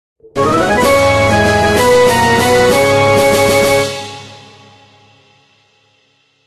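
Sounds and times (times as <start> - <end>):
victory jingle: 0.4 - 4.4.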